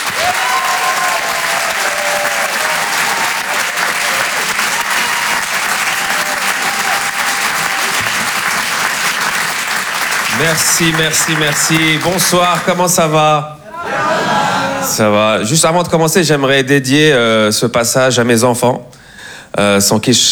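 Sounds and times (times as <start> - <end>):
comedy club audience clapping at the Rire et Chanson Comedy Club: 0.0 - 15.1
speech: 10.5 - 13.6, 14.8 - 20.3
laughter: 13.6 - 15.5.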